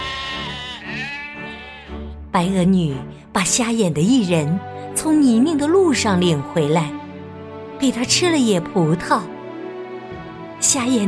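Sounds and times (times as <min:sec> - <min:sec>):
sheep bleating: 0:00.0 - 0:02.1
speech: 0:02.3 - 0:07.0, 0:07.8 - 0:09.3, 0:10.6 - 0:11.0.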